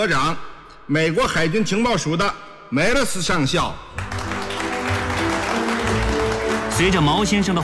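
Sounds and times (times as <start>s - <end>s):
speech: 0.0s - 4.1s, 6.8s - 7.6s
warm applause welcoming a US Navy intelligence colonel onto the stage: 3.9s - 7.6s
sustained music: 4.0s - 7.6s.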